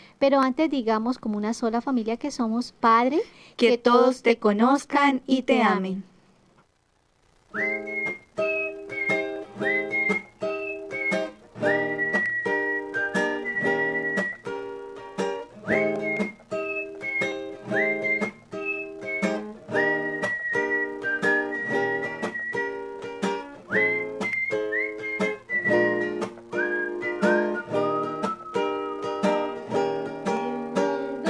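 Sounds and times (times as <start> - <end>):
speech: 0.2 - 6.1, 7.6 - 8.2
musical interlude with whistling: 7.5 - 14.9, 15.6 - 31.2.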